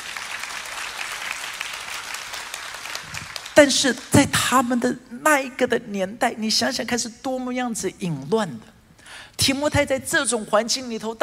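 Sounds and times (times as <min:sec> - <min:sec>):
audience applause: 0:00.0 - 0:03.6
speech: 0:03.6 - 0:08.8, 0:09.4 - 0:11.2.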